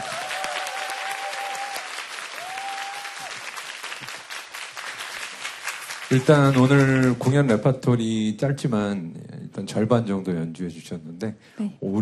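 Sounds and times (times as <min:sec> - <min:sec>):
audience applause: 0:00.0 - 0:07.7
speech: 0:06.1 - 0:11.9.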